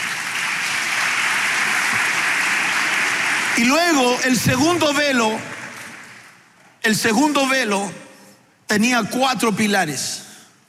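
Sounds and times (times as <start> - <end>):
audience applause: 0.0 - 6.4
speech: 3.6 - 5.5, 6.8 - 8.0, 8.7 - 10.3.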